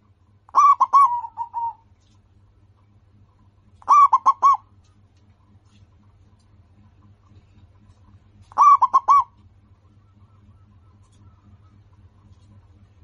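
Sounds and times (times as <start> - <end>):
zebra dove song: 0.5 - 1.9, 3.8 - 4.8, 8.4 - 12.8.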